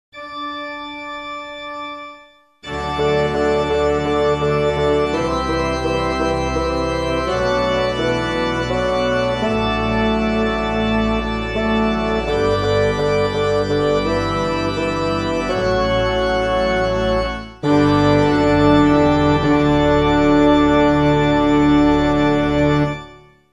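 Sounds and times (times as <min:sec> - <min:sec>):
MIDI penitential act absolution music: 0:02.7 - 0:23.3.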